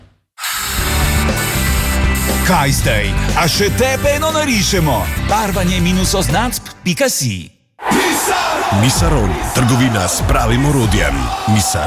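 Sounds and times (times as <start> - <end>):
power drill with a new bit drilling into concrete: 0.4 - 2.5
speech: 2.5 - 7.6, 8.7 - 11.8.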